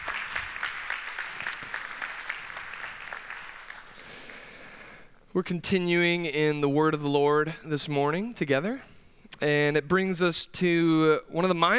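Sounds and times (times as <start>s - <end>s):
applause: 0.0s - 5.1s
speech: 5.4s - 11.7s.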